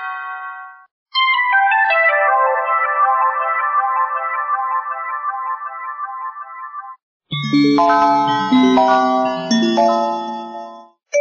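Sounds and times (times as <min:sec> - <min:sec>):
melodies: 0:01.1 - 0:10.9.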